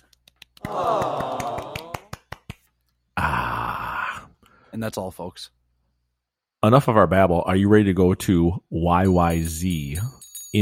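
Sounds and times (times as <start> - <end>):
golf clap: 0.0 - 2.8
speech: 4.8 - 5.6, 6.6 - 10.5.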